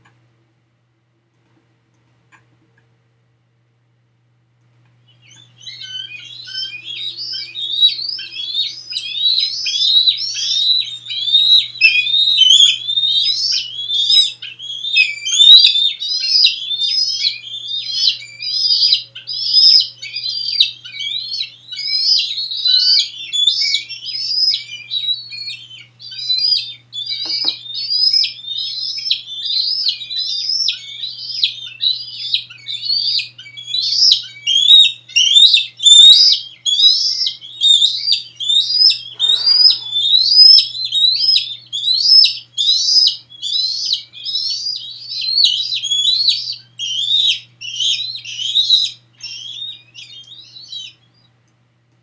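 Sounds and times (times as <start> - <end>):
juvenile eagle begging calls: 5.3 - 51.0.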